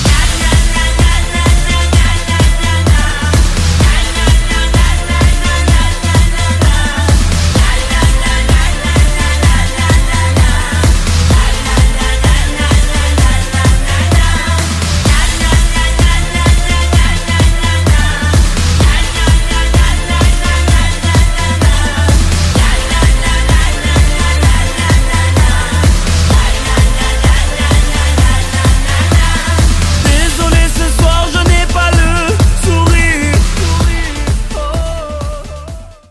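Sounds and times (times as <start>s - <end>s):
clown soprano singing: 0.1s - 36.1s.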